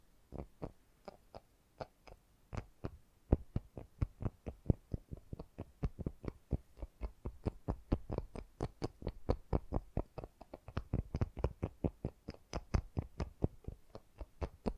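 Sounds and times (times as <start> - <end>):
fast gentle tapping: 2.5 - 14.7.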